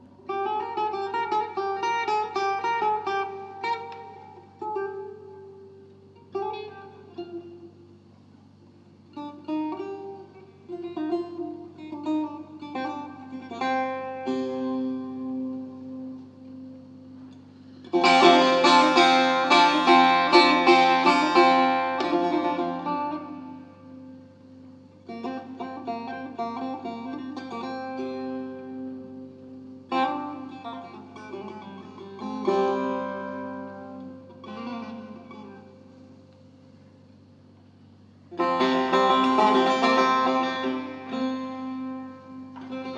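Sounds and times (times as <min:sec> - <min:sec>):
musical improvisation in Nava: 0:00.0 - 0:42.9.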